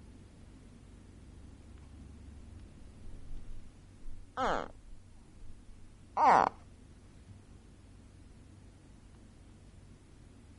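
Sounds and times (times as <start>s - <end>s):
gharial calls: 4.4s - 4.8s, 6.2s - 6.6s.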